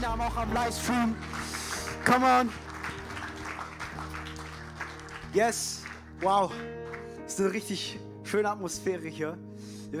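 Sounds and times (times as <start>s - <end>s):
audience applause: 0.0s - 7.2s
speech: 0.2s - 2.7s, 5.3s - 9.9s.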